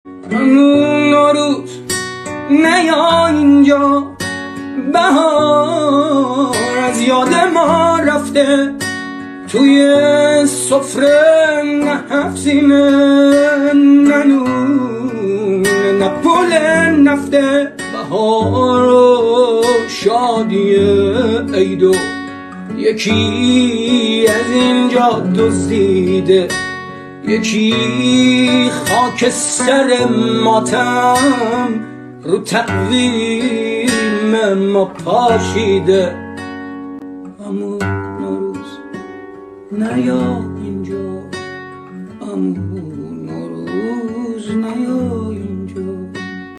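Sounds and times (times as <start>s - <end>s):
guitar: 0.0s - 46.5s.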